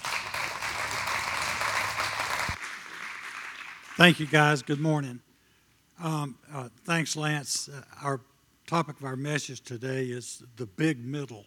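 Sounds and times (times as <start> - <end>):
audience hand clapping: 0.0 - 4.9
speech: 4.0 - 5.3, 6.0 - 11.4.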